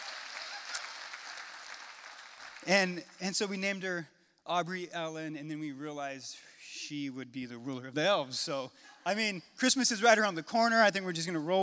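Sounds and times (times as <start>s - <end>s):
audience applause: 0.0s - 3.2s
speech: 2.6s - 11.6s.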